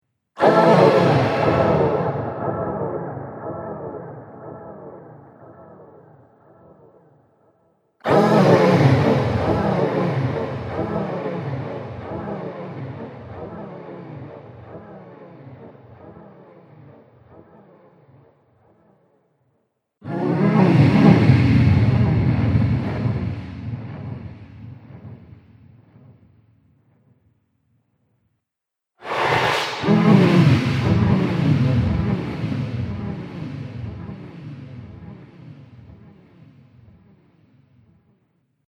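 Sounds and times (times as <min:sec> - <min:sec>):
alien sex sounds: 0:00.4 - 0:06.0, 0:08.0 - 0:14.7, 0:20.0 - 0:24.4, 0:29.0 - 0:34.2.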